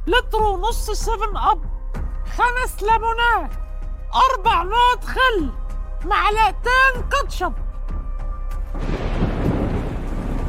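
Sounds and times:
speech: 0.1s - 1.7s, 2.3s - 7.6s
artificial storm thunder rumble: 8.7s - 10.4s.

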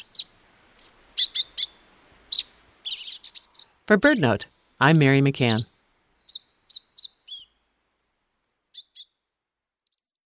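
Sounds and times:
euphonia false alarm calls: 0.0s - 3.8s, 4.8s - 7.6s, 8.7s - 9.2s
speech: 3.9s - 5.7s.

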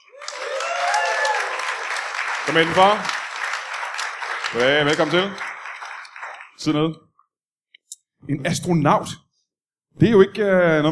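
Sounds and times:
audience applause welcoming a guest onto a live comedy talk show stage: 0.0s - 6.8s
speech: 2.5s - 3.2s, 4.5s - 5.5s, 6.6s - 7.1s, 8.2s - 9.2s, 10.0s - 10.9s.

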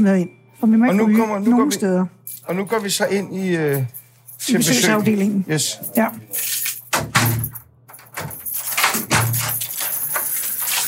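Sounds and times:
speech: 0.0s - 7.4s
keys jangling: 2.2s - 10.8s
doors opening and closing: 6.8s - 10.8s.

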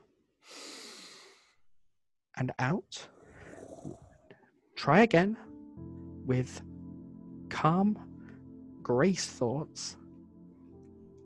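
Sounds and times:
person breathing in deeply: 0.4s - 1.6s, 3.1s - 4.5s
speech: 2.4s - 3.1s, 3.8s - 4.0s, 4.8s - 5.4s, 6.3s - 6.7s, 7.6s - 8.1s, 8.8s - 10.0s.

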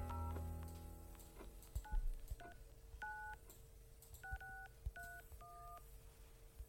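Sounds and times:
telephone keypad clicks: 0.1s - 5.9s.

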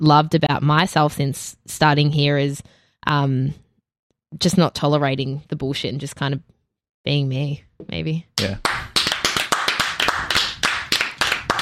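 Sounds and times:
speech: 0.0s - 3.6s, 4.3s - 8.7s
studio audience clapping: 8.4s - 11.6s.

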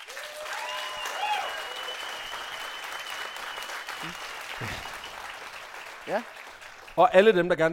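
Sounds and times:
audience applause: 0.0s - 7.7s
whistles: 0.7s - 5.2s
speech: 4.0s - 5.0s, 6.1s - 6.4s, 7.0s - 7.7s.

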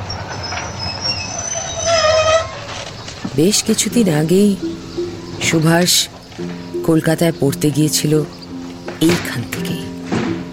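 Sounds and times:
wheels of train from Kolkata squealing pulling into Cuttack station: 0.0s - 2.9s
low rumble of rolling railcars: 0.0s - 10.5s
speech: 3.4s - 8.4s, 9.0s - 9.8s.

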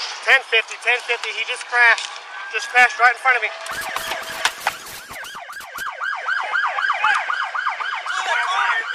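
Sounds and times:
speech: 0.2s - 4.1s
police car sirens: 2.4s - 8.9s
sharp clicks and knocks: 3.7s - 6.0s.

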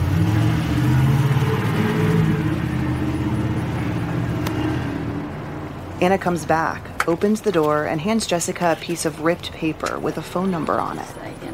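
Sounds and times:
construction truck engine roaring: 0.0s - 6.0s
speech: 6.0s - 11.2s.

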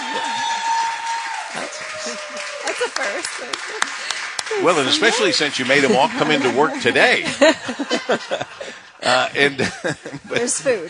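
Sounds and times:
laughter: 0.0s - 0.7s, 2.1s - 10.8s
audience clapping: 0.0s - 8.4s
speech: 2.4s - 10.8s.

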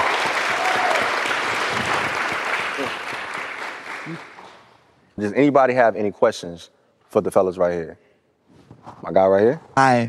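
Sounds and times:
audience applause: 0.0s - 4.6s
speech: 5.2s - 8.0s, 8.8s - 10.0s.

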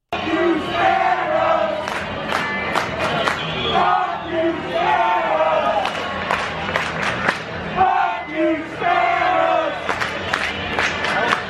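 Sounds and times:
stadium crowd chanting during the game: 0.1s - 11.4s.

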